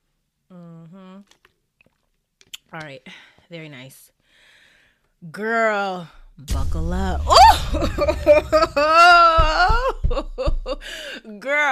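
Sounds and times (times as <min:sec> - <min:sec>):
person humming through closed lips: 0:00.5 - 0:01.3
wet mouth clicks: 0:01.2 - 0:02.8
speech: 0:02.7 - 0:04.5, 0:05.2 - 0:11.7.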